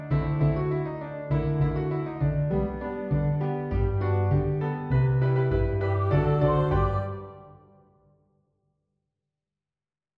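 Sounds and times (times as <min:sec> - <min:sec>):
instrumental finale music: 0:00.0 - 0:08.0.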